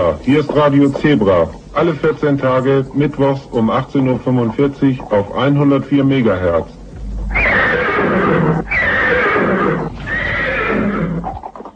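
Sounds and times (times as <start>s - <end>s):
speech: 0.1s - 7.5s
horse whinnying cheerfully: 7.3s - 11.6s.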